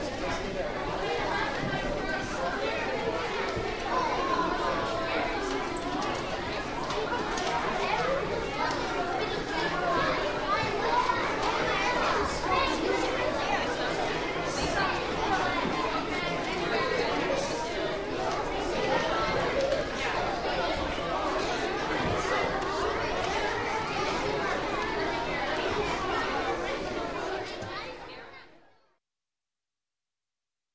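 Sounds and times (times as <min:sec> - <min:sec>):
children entering a school auditorium: 0:00.0 - 0:28.5.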